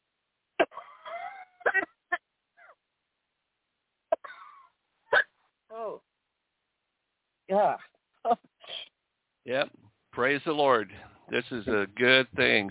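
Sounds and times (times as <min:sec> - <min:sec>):
person giving a big cough: 0:00.6 - 0:02.2, 0:04.1 - 0:05.3
speech: 0:07.5 - 0:08.5, 0:09.5 - 0:12.7.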